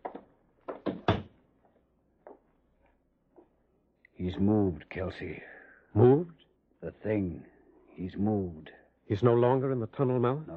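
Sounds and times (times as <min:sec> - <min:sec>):
door being shut: 0:00.0 - 0:01.4
speech: 0:04.2 - 0:06.4, 0:07.0 - 0:10.5.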